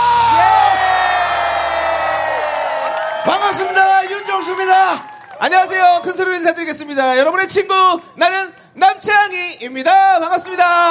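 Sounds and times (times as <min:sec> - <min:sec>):
crowd cheering and shouting: 0:00.0 - 0:06.8
speech: 0:03.5 - 0:10.8.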